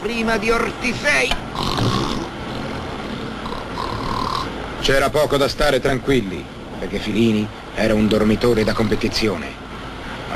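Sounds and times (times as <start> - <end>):
speech: 0.0 - 2.0, 4.8 - 9.6
steady rumbling background: 0.0 - 10.3
fart on a train: 1.6 - 2.3.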